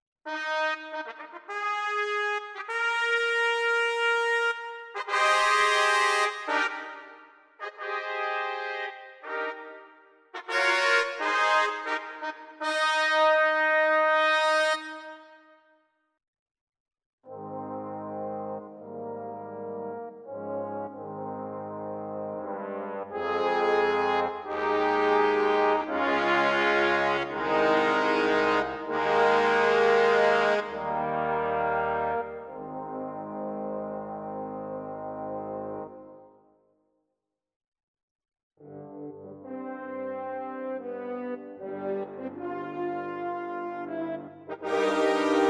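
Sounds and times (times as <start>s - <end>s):
Genos brass section: 0.3s - 15.6s, 17.3s - 36.4s, 38.6s - 45.4s.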